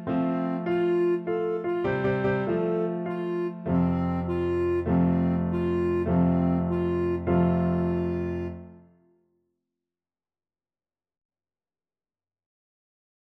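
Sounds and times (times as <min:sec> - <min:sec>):
clarinet playing a national anthem: 0:00.0 - 0:08.8.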